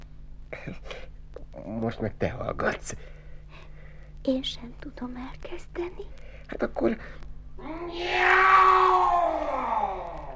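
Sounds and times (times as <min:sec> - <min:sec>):
speech: 0:01.7 - 0:03.2, 0:04.2 - 0:09.4
cat screeching: 0:07.7 - 0:10.3.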